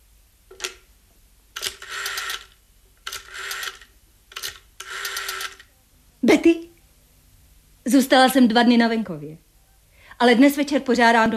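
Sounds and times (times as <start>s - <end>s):
telephone being dialed: 1.6s - 5.7s
speech: 6.4s - 6.7s, 7.9s - 9.4s, 10.2s - 11.3s.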